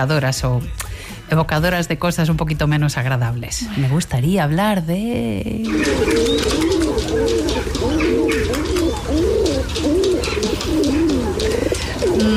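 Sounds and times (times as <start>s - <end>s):
speech: 0.0s - 9.9s
city pigeons cooing: 5.6s - 12.3s
hum of city traffic and street noise: 5.6s - 12.3s.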